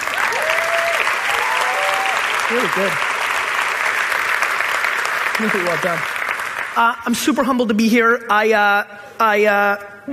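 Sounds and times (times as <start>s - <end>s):
audience applause: 0.0s - 6.8s
speech: 2.5s - 3.1s, 5.4s - 6.2s, 6.8s - 10.1s.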